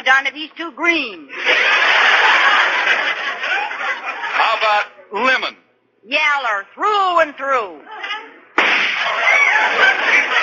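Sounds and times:
speech: 0:00.2 - 0:02.0, 0:04.6 - 0:08.0
laughter: 0:01.3 - 0:05.0, 0:09.0 - 0:10.4
gunshot sound effect: 0:08.6 - 0:09.2.

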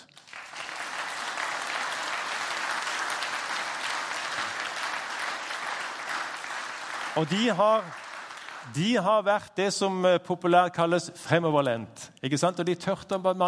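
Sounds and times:
audience applause: 0:00.0 - 0:08.8
speech: 0:07.2 - 0:08.0, 0:08.7 - 0:13.4.

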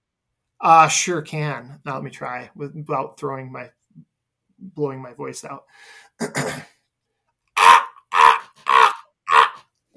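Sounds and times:
speech: 0:00.6 - 0:06.7
person imitating raven croaks: 0:07.6 - 0:09.7.

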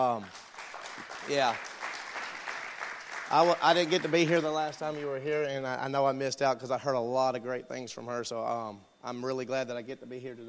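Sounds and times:
speech: 0:00.0 - 0:00.4, 0:01.2 - 0:01.7, 0:03.3 - 0:10.4
audience applause: 0:00.0 - 0:05.2.

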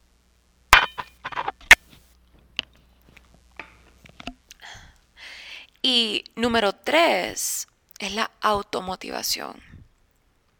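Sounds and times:
glass clinking: 0:00.8 - 0:01.5
speech: 0:05.9 - 0:09.7.

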